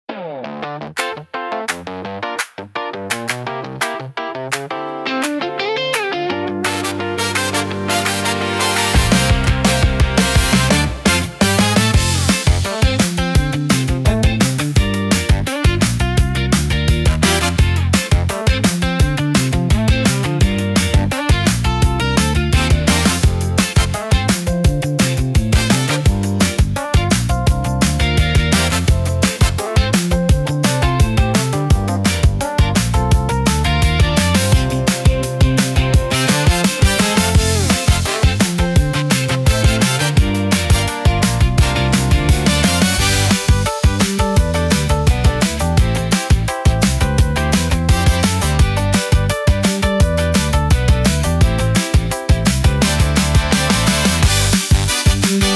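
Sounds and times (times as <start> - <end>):
music opener: 4.6 - 55.5.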